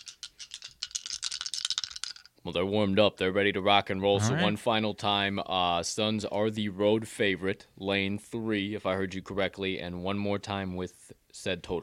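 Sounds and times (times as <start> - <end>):
dice rolling: 0.0 - 2.3
speech: 2.4 - 11.8.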